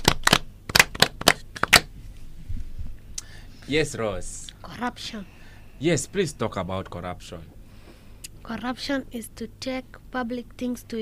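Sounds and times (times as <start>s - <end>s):
clapping: 0.0s - 1.9s
speech: 3.7s - 7.6s, 8.4s - 10.9s.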